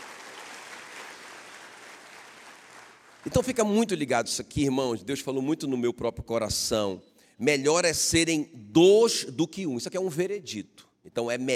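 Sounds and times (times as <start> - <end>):
audience applause: 0.0 - 3.3
speech: 3.2 - 11.5.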